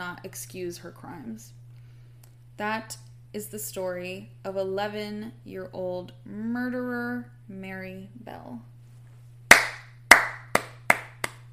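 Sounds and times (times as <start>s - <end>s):
speech: 0.0s - 1.6s, 2.6s - 8.7s
hand clapping: 9.5s - 11.5s.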